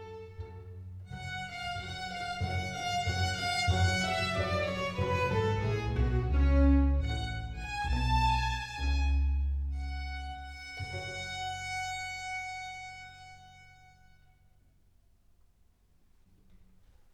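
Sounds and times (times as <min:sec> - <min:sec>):
strings and harpsichord playing a slow symphonic movement in G major: 0:01.2 - 0:13.0.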